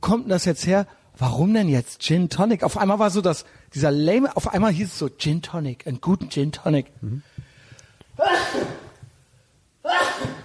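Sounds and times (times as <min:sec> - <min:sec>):
speech: 0:00.1 - 0:07.4
person sneezing: 0:08.2 - 0:09.0, 0:09.8 - 0:10.4.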